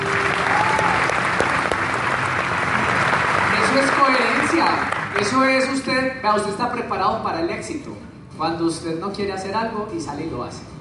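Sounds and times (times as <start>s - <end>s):
audience applause: 0.0s - 5.7s
speech: 4.5s - 10.7s.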